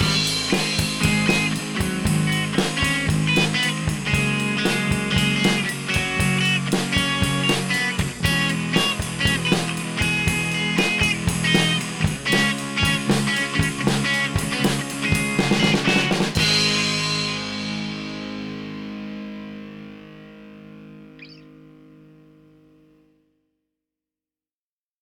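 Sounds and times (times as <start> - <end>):
drum beat: 0.0 - 18.2
bass: 0.0 - 22.8.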